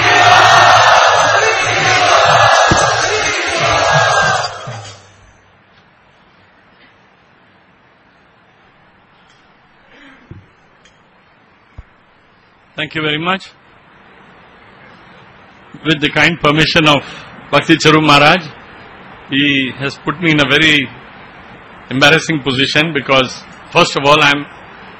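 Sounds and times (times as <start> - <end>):
audience loudly chanting in welcome at a devotional gathering: 0.0 - 5.2
speech: 12.8 - 13.6, 15.8 - 18.6, 19.3 - 21.0, 21.9 - 24.6.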